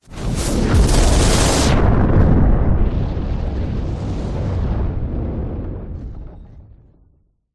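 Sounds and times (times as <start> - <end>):
backdraft explosion fire burst: 0.0 - 7.2.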